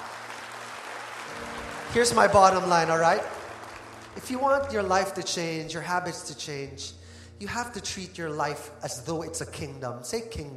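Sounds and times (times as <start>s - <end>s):
audience applause: 0.0s - 5.2s
speech: 1.9s - 3.4s, 4.2s - 10.5s.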